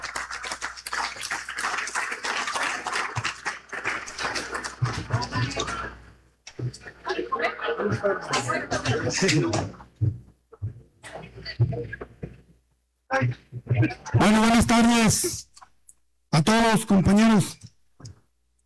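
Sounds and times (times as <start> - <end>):
crowd applauding: 0.0 - 6.0
laughter: 1.1 - 6.0, 6.6 - 9.8
speech: 7.8 - 9.8, 14.3 - 15.4, 16.5 - 17.6.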